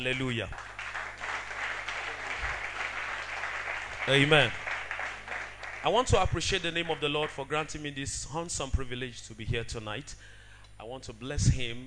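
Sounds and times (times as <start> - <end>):
speech: 0.0 - 0.7, 4.1 - 4.7, 5.8 - 11.8
audience clapping hands: 0.0 - 7.5.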